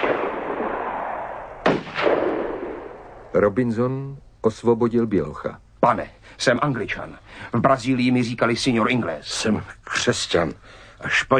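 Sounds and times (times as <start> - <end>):
gunshots fired at a boat: 0.0 - 3.4
speech: 3.4 - 11.3.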